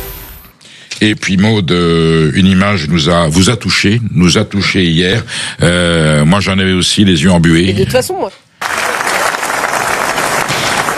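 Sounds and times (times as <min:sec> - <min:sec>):
speech: 0:01.0 - 0:08.4
standing ovation applause in festival theatre: 0:08.6 - 0:10.9.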